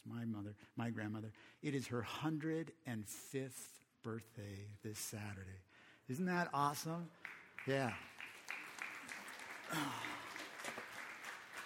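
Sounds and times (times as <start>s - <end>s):
speech: 0.0s - 8.3s, 9.7s - 10.1s
crowd clapping: 7.0s - 11.6s.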